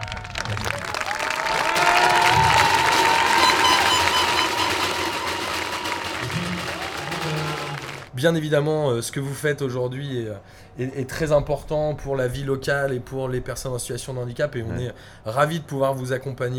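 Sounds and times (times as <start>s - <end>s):
audience applause: 0.0s - 8.1s
scattered cheers and whistles: 0.0s - 8.1s
speech: 8.2s - 16.5s.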